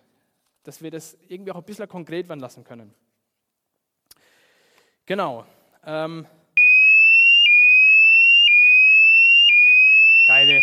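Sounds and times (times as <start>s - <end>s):
speech: 0.7s - 3.1s, 5.1s - 6.4s
fire alarm ringing: 6.6s - 10.6s.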